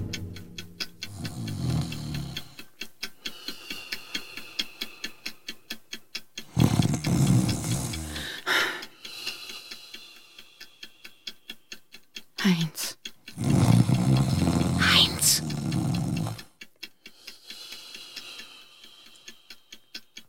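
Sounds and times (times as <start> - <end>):
loud rasping snoring: 1.1 - 2.6, 6.5 - 8.6, 13.3 - 16.6.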